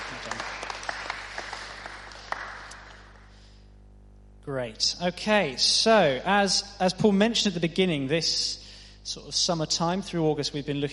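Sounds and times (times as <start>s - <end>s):
audience clapping: 0.0s - 3.4s
speech: 4.5s - 10.9s.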